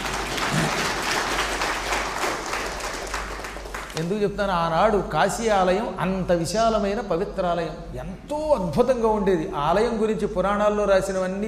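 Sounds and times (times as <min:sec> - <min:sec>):
large audience applause: 0:00.0 - 0:04.0
speech: 0:04.0 - 0:11.4.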